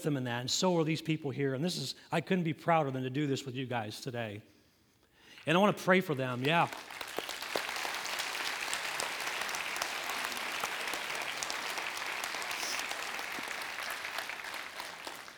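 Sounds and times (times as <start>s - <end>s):
speech: 0.0s - 4.6s, 5.4s - 7.0s
audience applause: 6.3s - 15.3s.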